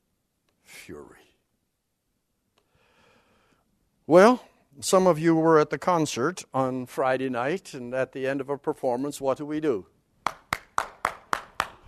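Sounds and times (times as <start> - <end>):
speech: 0.8 - 1.3, 4.1 - 9.9
hands clapping in rhythm: 10.2 - 11.8.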